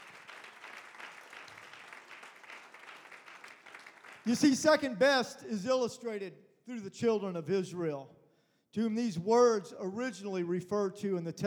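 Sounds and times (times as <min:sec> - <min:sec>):
audience clapping hands: 0:00.0 - 0:04.9
speech: 0:04.2 - 0:11.4.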